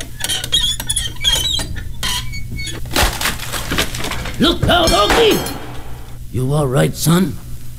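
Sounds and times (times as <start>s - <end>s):
old door falling off its hinges: 0.0s - 6.2s
speech: 4.4s - 5.6s, 6.3s - 7.4s.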